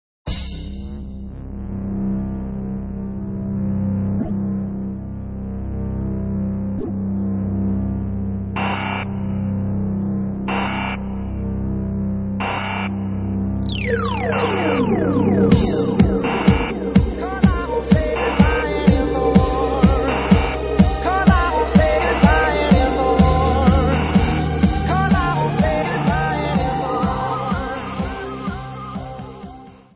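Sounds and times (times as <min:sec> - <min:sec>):
radio music mix: 0:00.3 - 0:29.9.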